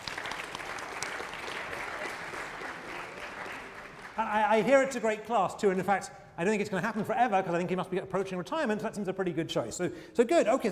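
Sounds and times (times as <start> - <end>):
classroom round of applause: 0.0 - 4.4
speech: 4.2 - 10.6.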